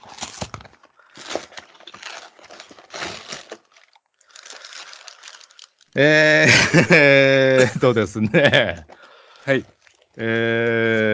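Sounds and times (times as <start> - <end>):
packaging crinkling as a parcel holding brown envelopes is opened: 0.0 - 6.1, 8.8 - 11.1
laughter: 6.0 - 8.9
speech: 6.0 - 8.9, 9.5 - 11.1.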